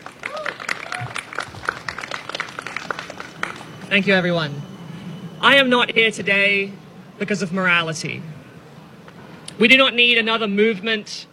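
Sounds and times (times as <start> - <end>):
audience at a talk clapping for a speaker: 0.0 - 3.9
crowd voices: 0.0 - 10.1
speech: 3.9 - 4.7, 5.4 - 8.3, 9.6 - 11.3.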